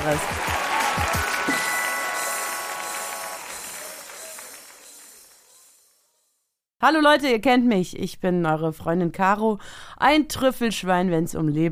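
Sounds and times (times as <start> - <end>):
audience applause: 0.0 - 5.8
speech: 0.1 - 1.2, 6.8 - 11.7.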